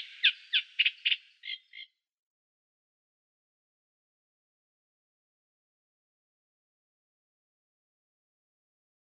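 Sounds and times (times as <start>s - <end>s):
Eurasian reed warbler singing: 0.0s - 1.9s.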